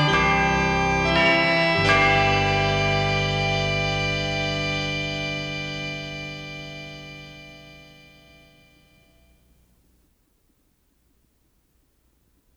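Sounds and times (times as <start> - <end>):
Christmas organ music: 0.0 - 9.6.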